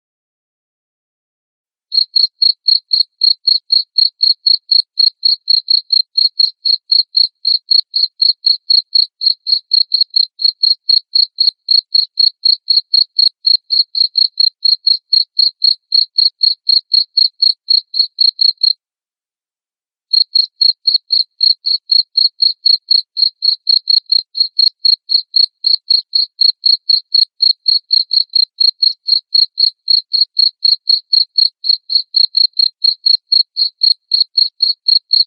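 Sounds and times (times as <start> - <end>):
cricket chirping: 2.0 - 18.8, 20.1 - 35.2.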